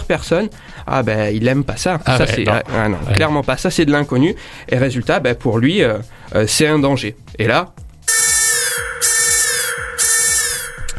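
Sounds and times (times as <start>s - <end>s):
speech: 0.1s - 7.8s
alarm bell ringing: 8.1s - 10.9s.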